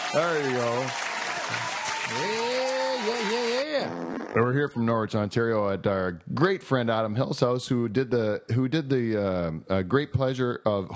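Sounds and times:
applause sound effect: 0.0s - 3.8s
speech: 0.1s - 10.9s.

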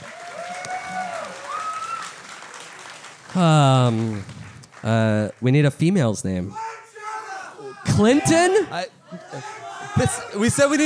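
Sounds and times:
audience applause: 0.0s - 5.4s
speech: 3.3s - 6.6s, 8.0s - 10.8s.

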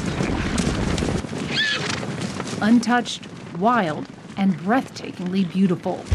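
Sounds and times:
wild mustang horses in a thundering herd on northern Wyoming badlands: 0.0s - 6.1s
wild mustang horse whinny: 1.5s - 2.0s
speech: 2.6s - 6.1s.

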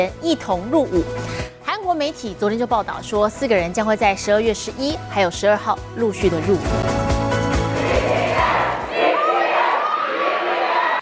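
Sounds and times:
speech: 0.0s - 7.0s
crowd cheering: 7.4s - 11.0s.

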